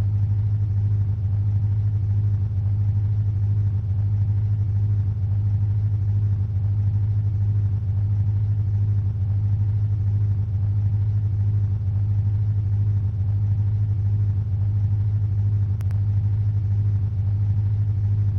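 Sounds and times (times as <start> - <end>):
engine ambience: 0.0 - 18.3.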